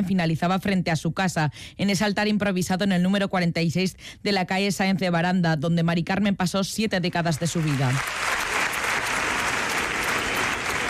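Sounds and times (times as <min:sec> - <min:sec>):
speech: 0:00.0 - 0:08.4
crowd applause at a street protest: 0:07.6 - 0:10.8.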